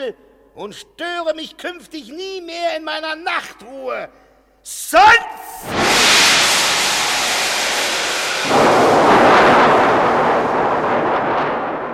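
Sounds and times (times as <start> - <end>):
speech: 0.0 - 6.0
lightning strike with thunderclap: 5.6 - 11.9.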